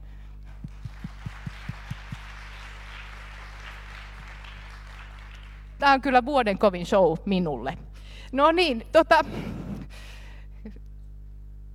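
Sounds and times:
audience applause: 0.6 - 5.8
speech: 5.8 - 9.6.

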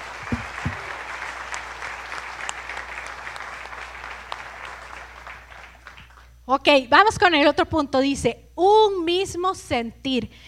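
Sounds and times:
audience applause: 0.0 - 6.3
speech: 6.5 - 10.4.

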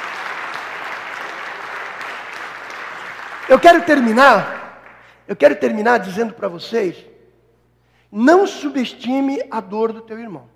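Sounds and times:
audience applause: 0.0 - 5.1
speech: 3.5 - 4.6, 5.3 - 7.1, 8.1 - 10.5.

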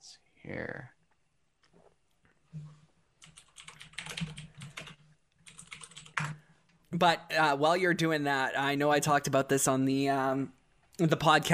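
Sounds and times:
speech: 0.4 - 1.0, 7.0 - 11.5
typing a search query on a computer keyboard: 3.2 - 6.4.

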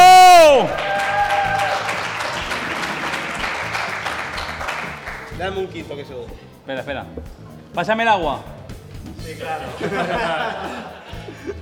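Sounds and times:
audience applause: 0.7 - 5.4
speech: 5.5 - 11.6
laughter: 9.3 - 11.6.

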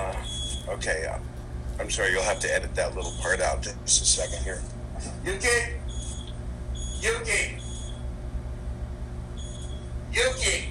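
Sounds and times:
smoke alarm beeping: 0.1 - 0.7, 1.9 - 4.7, 5.4 - 8.1, 9.3 - 10.6
speech: 0.8 - 5.8, 7.0 - 7.6, 10.1 - 10.7.

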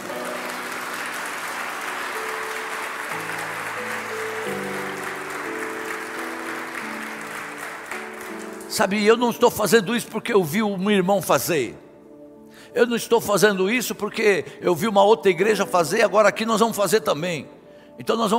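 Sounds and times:
audience applause: 0.0 - 8.8
speech: 8.8 - 11.8, 12.7 - 18.3.

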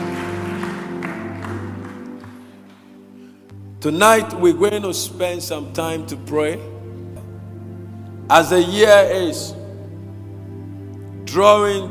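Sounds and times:
audience clapping: 0.0 - 3.3
held keyboard chords: 0.0 - 11.9
speech: 3.8 - 6.8, 8.3 - 9.6, 11.3 - 11.9.

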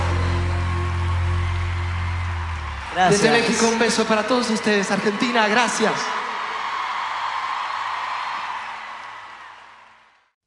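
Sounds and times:
applause: 0.0 - 10.4
speech: 3.0 - 6.2.

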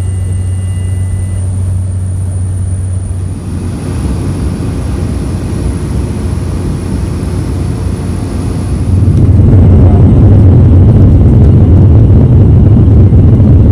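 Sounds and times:
airplane taking off on inter-island flight: 0.0 - 13.6.

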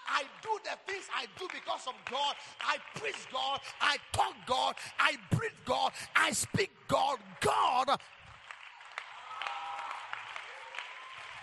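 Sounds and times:
raised voices cheering: 0.0 - 8.1, 8.8 - 11.4
crowd applause: 0.0 - 11.4
speech: 0.2 - 8.2.

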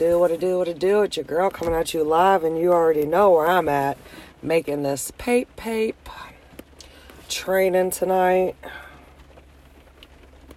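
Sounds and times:
speech: 0.0 - 6.3, 7.3 - 8.8
rain falling: 0.0 - 10.5.

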